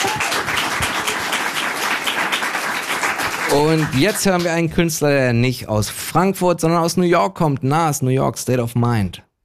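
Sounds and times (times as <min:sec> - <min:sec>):
audience applause: 0:00.0 - 0:04.7
speech: 0:03.6 - 0:09.3.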